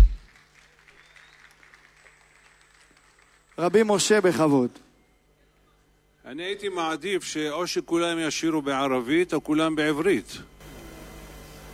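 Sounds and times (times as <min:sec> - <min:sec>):
audience applause: 0:00.0 - 0:04.3
speech: 0:03.6 - 0:04.9, 0:06.3 - 0:10.5.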